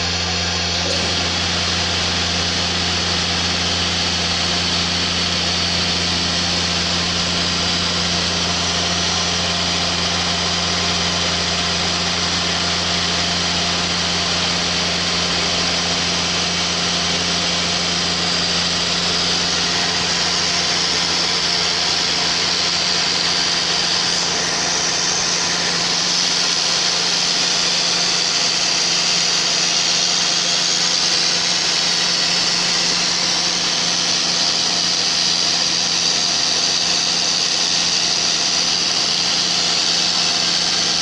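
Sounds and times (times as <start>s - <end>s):
steady low hum: 0.0s - 16.2s
CNC power tool cutting an electrical cabinet front panel: 0.0s - 41.0s.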